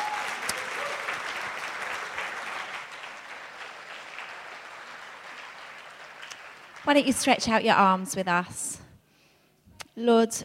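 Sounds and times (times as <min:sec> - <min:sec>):
church audience applauding: 0:00.0 - 0:07.4
speech: 0:06.8 - 0:08.8, 0:10.0 - 0:10.4.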